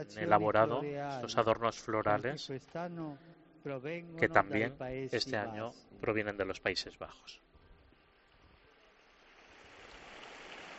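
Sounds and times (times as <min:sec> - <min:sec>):
speech: 0:00.0 - 0:07.4
large crowd applauding in the square: 0:09.5 - 0:10.7.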